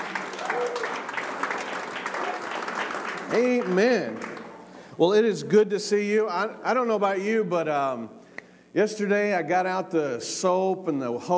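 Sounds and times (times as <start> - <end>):
audience clapping hands in praise: 0.0 - 4.7
speech: 3.3 - 4.4, 5.0 - 11.3.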